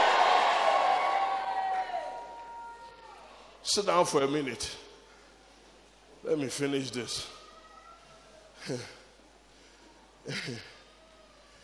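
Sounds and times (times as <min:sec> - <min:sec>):
crowd shouting yay and cheering: 0:00.0 - 0:03.2
speech: 0:03.6 - 0:04.9, 0:06.2 - 0:07.4, 0:08.6 - 0:09.0, 0:10.2 - 0:10.7.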